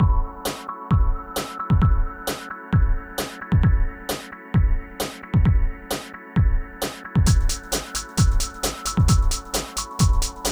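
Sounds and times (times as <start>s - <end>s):
hardcore breakbeat at 132 BPM in E minor: 0.0s - 10.5s.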